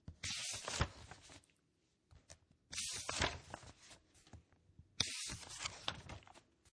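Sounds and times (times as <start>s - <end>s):
large book pages turning: 0.0s - 1.5s, 2.1s - 6.7s
paper sliding: 0.2s - 1.4s, 2.7s - 4.0s, 5.0s - 6.4s.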